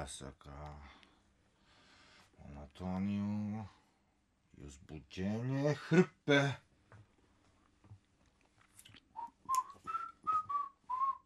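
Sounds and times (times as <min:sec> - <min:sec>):
speech: 0:00.0 - 0:01.0, 0:02.4 - 0:03.8, 0:04.6 - 0:06.7
worker whistling a calm tune while laying stage boards: 0:09.2 - 0:11.2.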